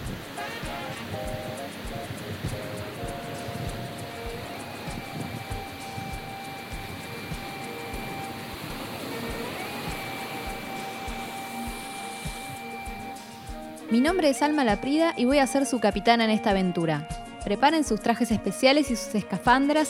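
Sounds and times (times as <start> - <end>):
ocean waves: 0.0 - 15.4
speech: 13.9 - 19.8.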